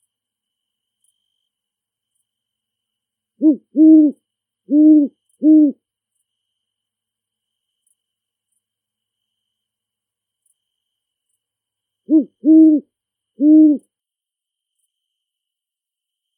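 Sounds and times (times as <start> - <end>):
great horned owl hooting in a big forest: 3.4 - 5.8, 12.1 - 13.9.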